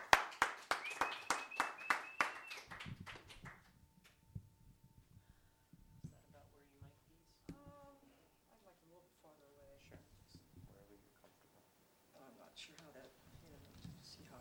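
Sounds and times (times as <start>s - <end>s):
audience round of applause: 0.0s - 3.6s.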